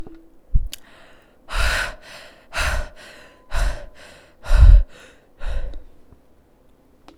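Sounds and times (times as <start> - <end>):
breathing: 0.7 - 6.0.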